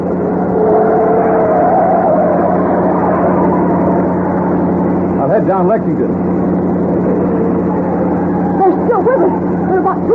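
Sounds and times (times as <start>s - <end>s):
car engine accelerating during chase: 0.0s - 10.1s
speech: 5.5s - 6.8s, 9.0s - 10.1s.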